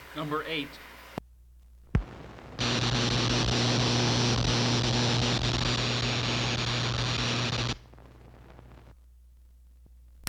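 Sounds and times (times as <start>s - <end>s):
electric sparks buzzing: 1.9s - 9.0s.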